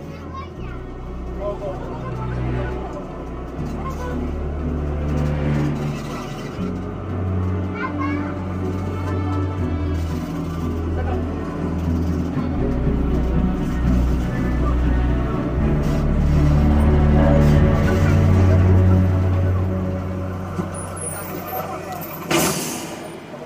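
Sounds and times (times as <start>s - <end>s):
children chattering on a bus: 0.0s - 23.4s
city bus engine rumble with shifting gears in Rome: 0.0s - 23.4s
other voices murmuring on a bus: 0.0s - 23.4s
bus air brakes hissing: 20.8s - 23.4s.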